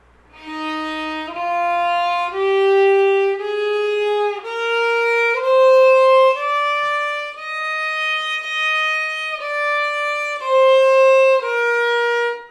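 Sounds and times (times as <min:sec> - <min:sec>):
violin playing an E-flat scale: 0:00.3 - 0:12.4.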